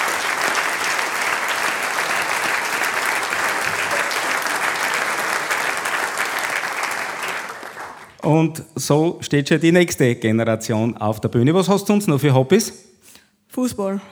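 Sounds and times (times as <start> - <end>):
audience applause: 0.0 - 8.2
speech: 8.2 - 12.9, 13.6 - 14.1.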